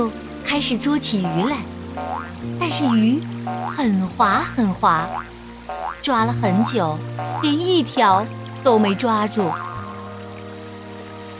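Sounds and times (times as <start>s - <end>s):
speech: 0.0s - 9.7s
rain falling: 0.0s - 11.3s.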